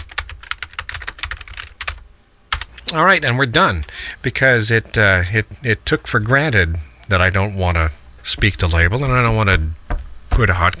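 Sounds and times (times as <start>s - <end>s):
typing on a computer keyboard: 0.0s - 2.7s
speech: 2.9s - 9.8s, 10.4s - 10.7s.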